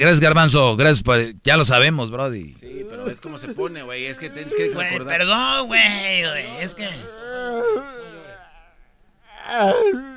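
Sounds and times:
speech: 0.0s - 8.1s, 9.5s - 10.1s
person wailing and moaning into a microphone: 2.7s - 10.1s.

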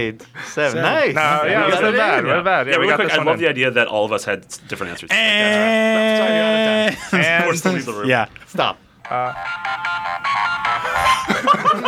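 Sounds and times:
speech: 0.0s - 10.0s
laughter: 5.1s - 7.7s, 9.2s - 11.8s
phone timer alarm ringing: 9.0s - 11.4s.

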